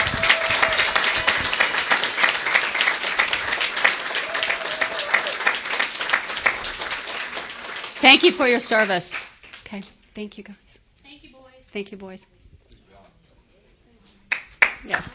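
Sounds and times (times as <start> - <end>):
audience applause: 0.0 - 9.4
speech: 8.1 - 10.6, 11.7 - 12.4, 14.9 - 15.1.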